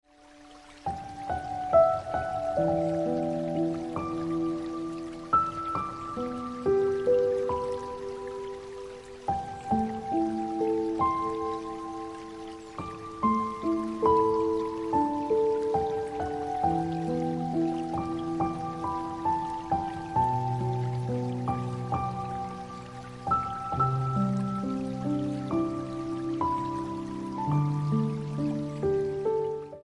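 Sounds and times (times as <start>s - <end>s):
piano ringtone music: 0.9s - 29.8s.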